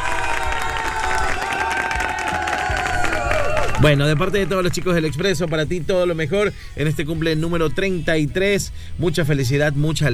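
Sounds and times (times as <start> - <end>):
group shouting and cheering in surprise: 0.0 - 5.5
applause-like clatter: 0.1 - 4.9
speech: 3.8 - 10.1.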